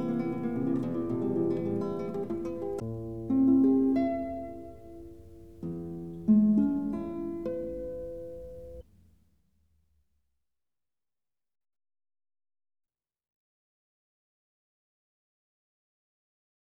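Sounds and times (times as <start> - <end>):
allegro non troppo arpeggio etude in E minor: 0.0 - 8.8.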